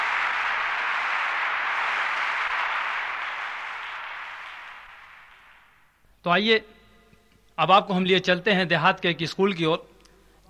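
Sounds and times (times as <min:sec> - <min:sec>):
audience applause: 0:00.0 - 0:05.9
speech: 0:06.2 - 0:06.8, 0:07.6 - 0:09.9.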